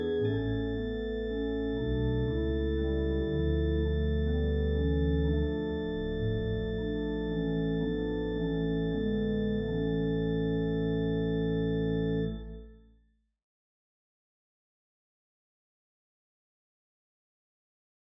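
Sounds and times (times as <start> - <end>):
organ with reverb: 0.0 - 12.9.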